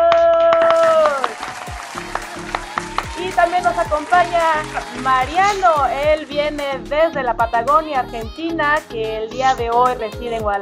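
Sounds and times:
applause: 0.0s - 6.8s
speech: 3.6s - 10.6s.

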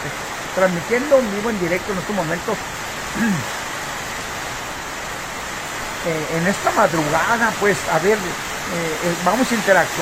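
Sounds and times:
heavy rain in a thunderstorm: 0.0s - 10.0s
speech: 0.6s - 3.6s, 6.0s - 10.0s.

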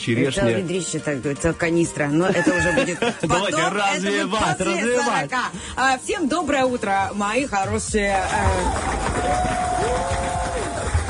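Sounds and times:
speech: 0.0s - 10.0s
laughter: 2.3s - 5.0s
crowd applause: 8.2s - 11.0s
audience noise: 8.3s - 11.0s.

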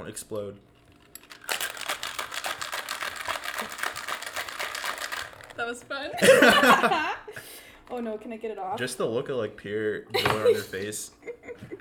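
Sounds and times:
speech: 0.0s - 0.7s, 3.6s - 3.8s, 5.6s - 11.7s
cocktail shaker being shaken: 0.8s - 5.6s
laughter: 6.2s - 7.4s, 10.2s - 11.7s.

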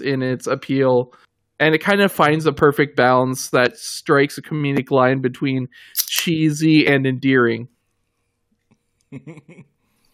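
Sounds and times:
speech: 0.0s - 7.7s, 9.1s - 9.7s
drink cap popping: 6.0s - 6.3s.

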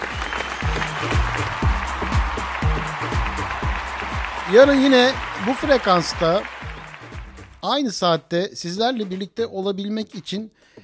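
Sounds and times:
stadium crowd applause: 0.0s - 7.7s
speech: 4.5s - 6.6s, 7.6s - 10.7s.

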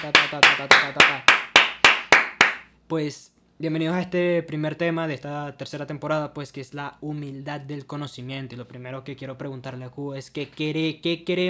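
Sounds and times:
speech: 0.0s - 1.4s, 2.9s - 11.4s
slow evenly spaced hand claps: 0.0s - 2.7s.

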